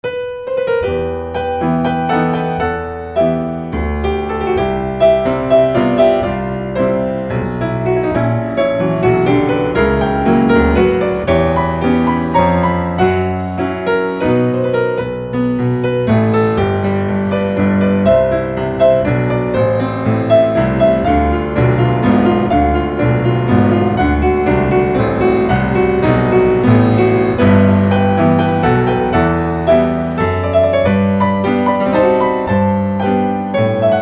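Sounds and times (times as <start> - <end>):
waltz music: 1.0 - 34.0.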